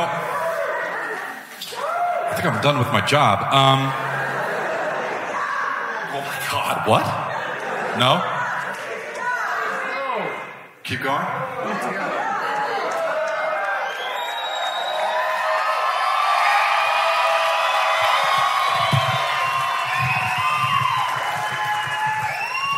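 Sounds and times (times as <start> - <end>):
crowd cheering and shouting: 0.0 - 10.6, 11.3 - 22.7
speech: 2.4 - 4.0, 6.2 - 7.4, 8.0 - 8.3, 10.9 - 12.1
laughter: 3.6 - 9.9
people clapping: 11.8 - 22.7.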